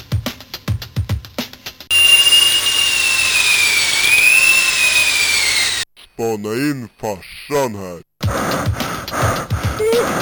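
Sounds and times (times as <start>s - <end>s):
drill running: 1.9s - 5.9s
speech: 6.2s - 10.2s.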